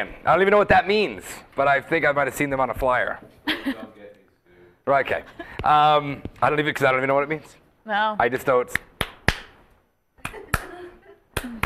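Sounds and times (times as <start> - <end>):
speech: 0.0 - 4.0, 4.8 - 8.9
card slapped against a hand: 8.8 - 9.6.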